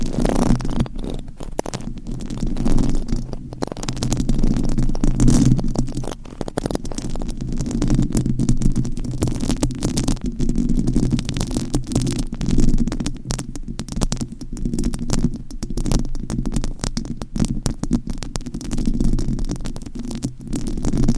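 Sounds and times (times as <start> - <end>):
microphone scratching: 0.0 - 21.1.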